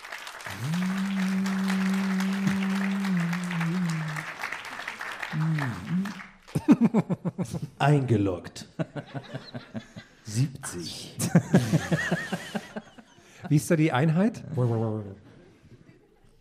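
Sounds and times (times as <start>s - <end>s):
live audience applause: 0.0s - 7.0s
rhythmic clapping: 0.0s - 7.4s
laughter: 0.4s - 7.8s, 8.6s - 10.3s, 11.1s - 13.6s
low held tone: 0.5s - 4.2s
speech: 6.7s - 12.3s, 13.5s - 15.2s.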